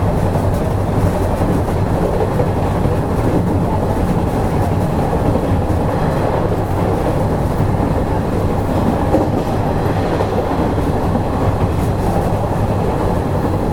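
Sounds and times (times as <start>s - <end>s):
Nishi-Nippon Railroad 5000 series train running rumble: 0.0s - 13.7s.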